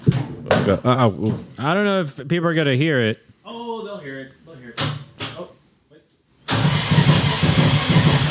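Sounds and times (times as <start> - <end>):
speech: 0.6 - 4.9
car engine cranking, catching and running roughly: 6.5 - 8.2.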